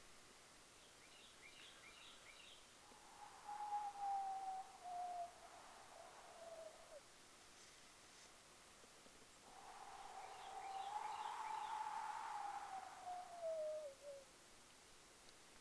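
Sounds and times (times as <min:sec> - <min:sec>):
wind whistling: 0:02.8 - 0:07.1, 0:09.4 - 0:14.3.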